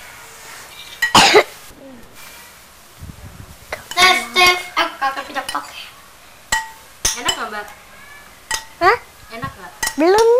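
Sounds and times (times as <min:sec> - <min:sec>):
brief voices: 0:03.7 - 0:10.3
spoon stirring in a pot: 0:06.5 - 0:07.5, 0:08.5 - 0:08.8, 0:09.8 - 0:10.3.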